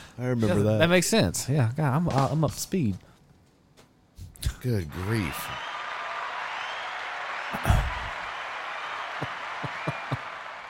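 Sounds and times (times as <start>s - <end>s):
speech: 0.2s - 3.1s, 4.6s - 5.6s
applause: 4.9s - 10.6s.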